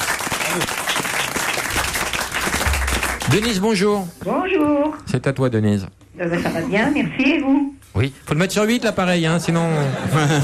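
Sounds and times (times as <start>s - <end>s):
audience applause: 0.0s - 3.7s
speech: 0.6s - 0.8s, 3.3s - 10.4s
laughter: 9.5s - 10.4s.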